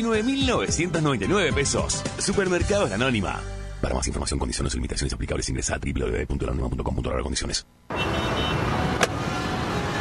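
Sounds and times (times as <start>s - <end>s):
speech: 0.0s - 8.2s
car engine and road noise: 7.7s - 9.9s.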